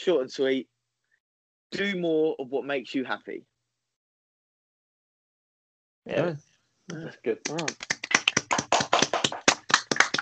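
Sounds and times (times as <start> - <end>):
speech: 0.0 - 0.8, 1.7 - 3.5, 6.1 - 7.9
brief hand clapping: 7.4 - 10.2.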